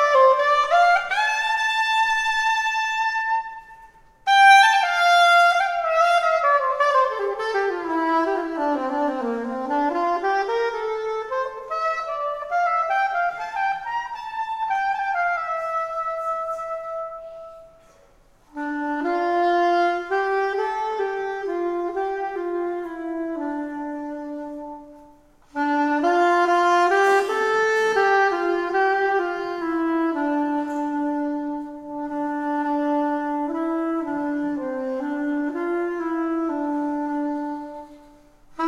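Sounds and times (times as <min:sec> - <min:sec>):
soprano saxophone improvisation: 0:00.0 - 0:38.6.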